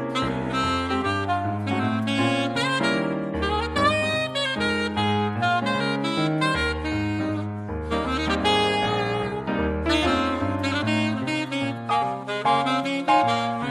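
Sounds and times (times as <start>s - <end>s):
piano: 0.0s - 13.6s
saxophone: 0.0s - 13.6s.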